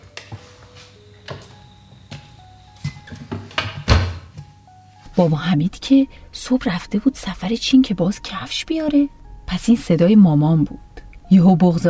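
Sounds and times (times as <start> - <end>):
house door opening: 2.8 - 4.4
speech: 5.2 - 11.8.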